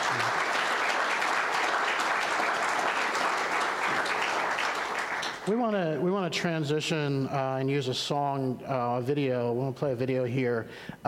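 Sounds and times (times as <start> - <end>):
audience applause: 0.0 - 5.6
speech: 5.5 - 11.0.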